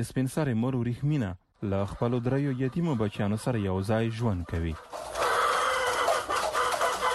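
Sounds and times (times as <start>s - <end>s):
speech: 0.0s - 5.2s
about a hundred chickens clucking in a small mud-brick coop: 1.4s - 7.1s.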